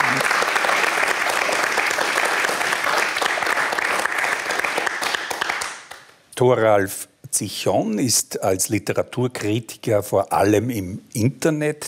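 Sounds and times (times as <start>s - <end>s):
audience applause: 0.0s - 6.1s
speech: 6.4s - 11.8s.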